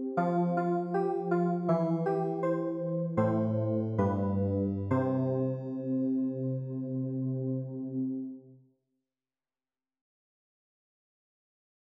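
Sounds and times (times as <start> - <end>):
keyboard: 0.0 - 8.6.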